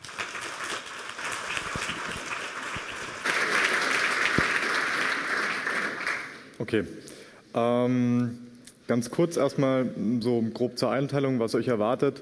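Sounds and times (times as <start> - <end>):
audience applause: 0.0 - 6.5
speech: 6.6 - 12.2.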